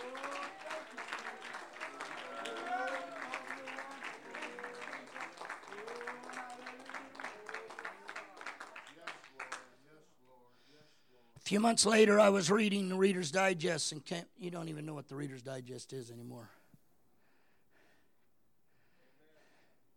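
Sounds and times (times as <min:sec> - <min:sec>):
audience clapping hands: 0:00.0 - 0:09.8
speech: 0:11.5 - 0:16.6.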